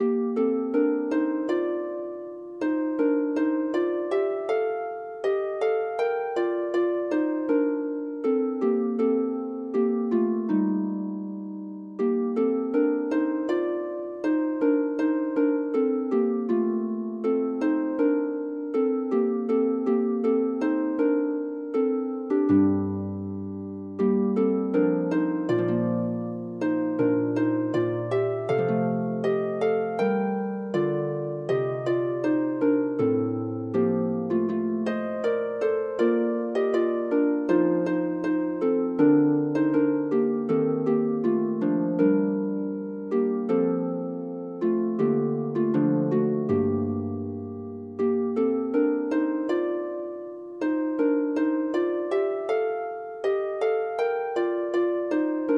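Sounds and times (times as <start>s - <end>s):
harp: 0.0s - 55.5s.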